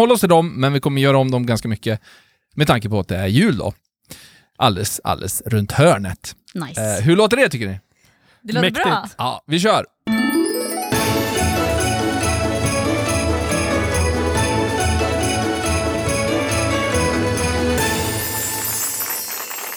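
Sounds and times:
speech: 0.0 - 9.9
festive Christmas special jingle: 10.1 - 19.7
sleigh bells: 10.1 - 19.7.

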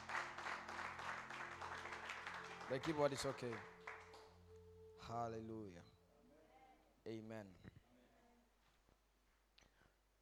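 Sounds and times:
audience clapping hands: 0.0 - 4.4
speech: 2.7 - 3.8, 5.1 - 6.0, 7.1 - 7.8.

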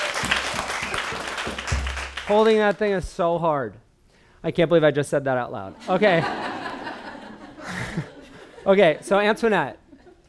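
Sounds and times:
crowd applause: 0.0 - 2.8
speech: 2.3 - 3.8, 4.4 - 6.4, 8.0 - 9.8
laughter: 5.8 - 10.2.

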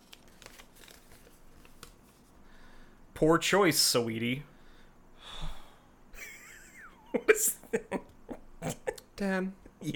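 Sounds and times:
piece of paper from a bag crinkling as it is unwrapped: 0.0 - 2.3
speech: 3.2 - 4.5, 9.2 - 9.9.

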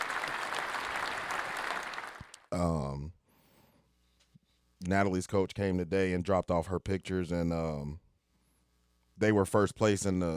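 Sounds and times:
round of applause: 0.0 - 2.5
speech: 2.5 - 3.2, 4.9 - 8.0, 9.2 - 10.3.

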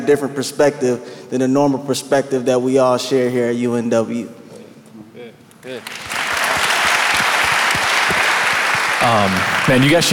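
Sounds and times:
speech: 0.0 - 4.4, 5.6 - 6.0, 9.1 - 10.1
audience applause: 5.7 - 10.1.

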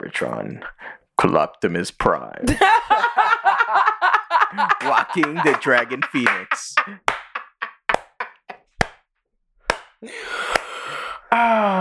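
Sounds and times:
speech: 0.0 - 3.8, 4.5 - 7.1, 10.0 - 10.6, 11.3 - 11.8
laughter: 2.4 - 8.7
hand clapping: 4.5 - 9.0, 9.7 - 10.8.

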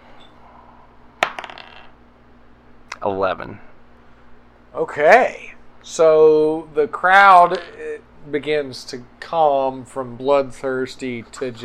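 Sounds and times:
faint steady hum: 0.0 - 11.6
dice rolling on a hard table: 1.2 - 2.0
speech: 3.0 - 3.7, 4.7 - 11.6.

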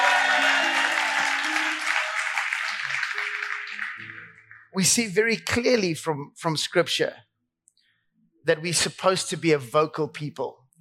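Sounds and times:
audience clapping: 0.0 - 5.1
speech: 4.8 - 7.3, 8.4 - 10.7.

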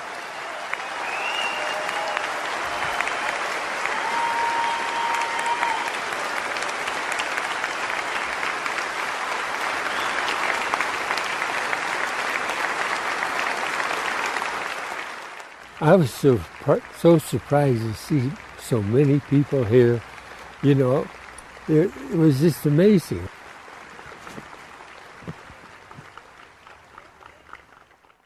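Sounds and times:
faint whistles and cheers: 0.0 - 6.9, 9.7 - 10.8
applause from a large audience: 0.0 - 28.2
speech: 15.9 - 23.4.

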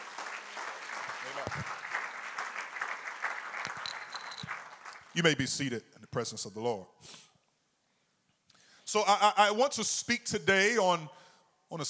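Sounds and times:
audience clapping hands: 0.0 - 5.4
speech: 5.2 - 7.2, 8.9 - 11.8.

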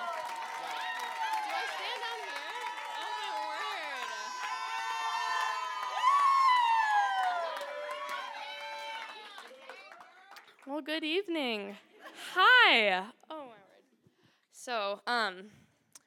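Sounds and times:
crowd cheering, whooping and clapping to welcome a speaker at a church gathering: 0.0 - 10.7
speech: 10.7 - 13.2, 14.6 - 15.6.

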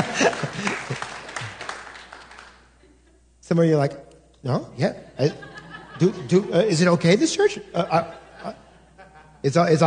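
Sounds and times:
laughter: 0.0 - 1.3, 4.9 - 9.5
scattered audience clapping: 0.0 - 2.7
speech: 3.5 - 8.6, 9.4 - 9.8.

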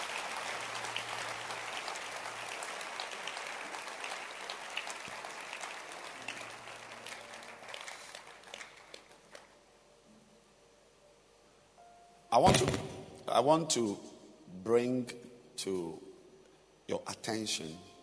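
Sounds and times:
audience clapping hands: 0.0 - 9.6
speech: 12.4 - 14.1, 14.7 - 16.0, 16.9 - 17.9.

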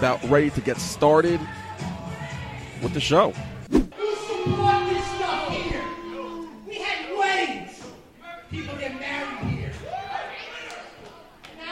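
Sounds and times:
speech: 0.0 - 1.7, 2.8 - 4.6
sharp thud: 3.7 - 4.7
wrestling crowd roaring and yelling: 3.9 - 7.8, 8.4 - 11.4
crowd whooping: 4.0 - 7.1, 9.7 - 10.9.

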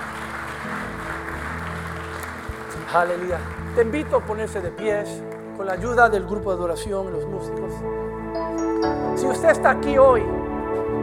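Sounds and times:
audience applause: 0.0 - 5.6
speech: 2.9 - 8.2, 8.8 - 10.4.

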